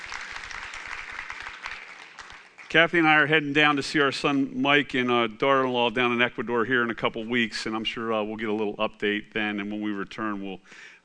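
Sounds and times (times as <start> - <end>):
audience applause: 0.0 - 2.8
speech: 2.7 - 11.0.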